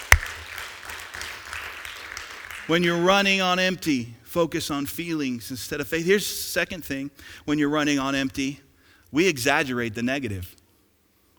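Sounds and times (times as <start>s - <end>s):
round of applause: 0.0s - 2.8s
speech: 2.7s - 10.6s.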